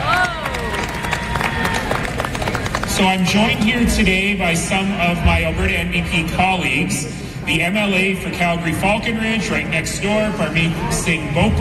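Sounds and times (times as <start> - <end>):
crowd applauding performers: 0.0 - 3.7
murmur of voices: 0.0 - 11.6
speech: 3.0 - 11.6.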